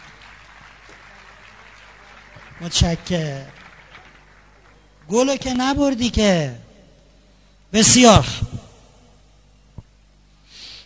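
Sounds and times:
audience applause: 0.0s - 5.3s
speech: 2.6s - 3.6s, 5.1s - 6.6s, 7.7s - 8.4s.

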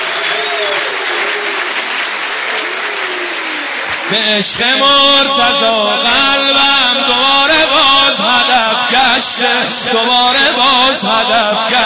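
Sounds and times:
audience clapping at a live singing event: 0.0s - 5.5s
speech: 4.1s - 11.8s.

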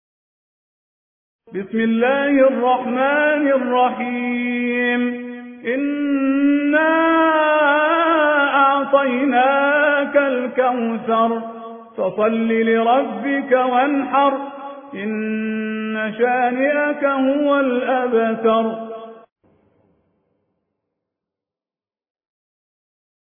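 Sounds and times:
Quran recitation: 1.5s - 19.3s.

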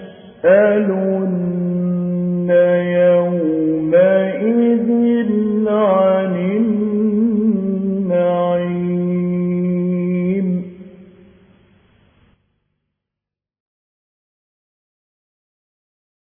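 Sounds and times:
mujawwad Quran recitation: 0.0s - 11.1s.

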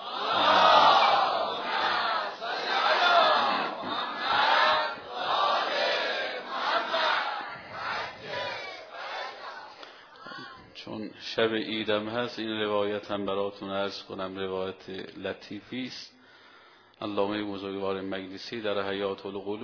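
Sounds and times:
congregation reciting salawat aloud in unison: 0.0s - 9.8s
speech: 11.4s - 16.2s, 17.0s - 19.6s.

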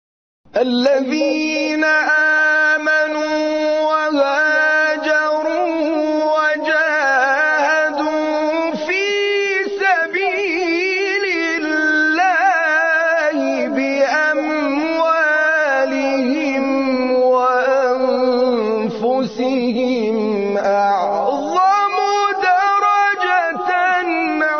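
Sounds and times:
recitation of a verse: 0.5s - 24.5s.

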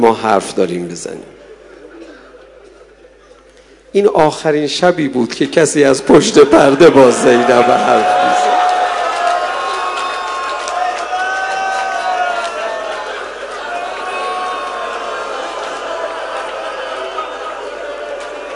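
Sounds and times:
speech: 0.0s - 1.4s, 3.9s - 8.5s
crowd shouting: 6.5s - 18.5s.

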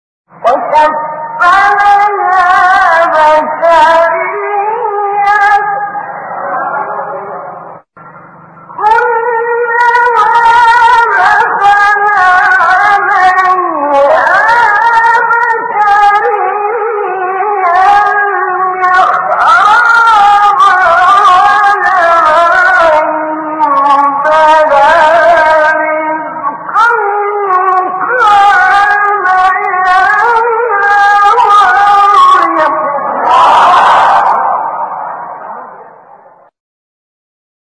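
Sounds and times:
recitation of a beautiful passage from a surah: 0.3s - 36.5s.

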